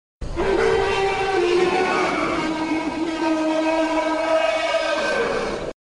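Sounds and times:
alien noise: 0.2 - 5.8.

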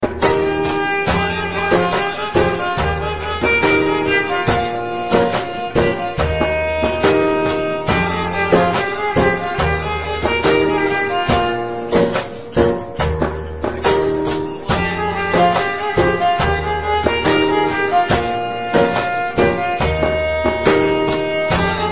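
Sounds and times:
violin: 0.0 - 21.8.

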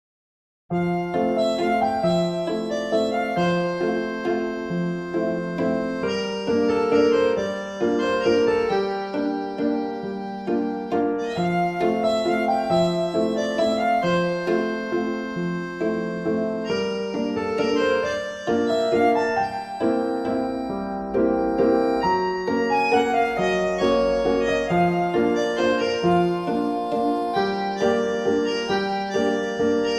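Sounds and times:
French music: 0.7 - 29.9.

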